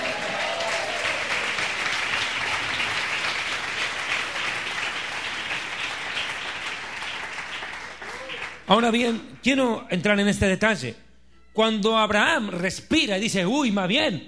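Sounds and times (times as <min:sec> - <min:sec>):
audience applause: 0:00.0 - 0:09.1
speech: 0:08.7 - 0:11.0, 0:11.6 - 0:14.2.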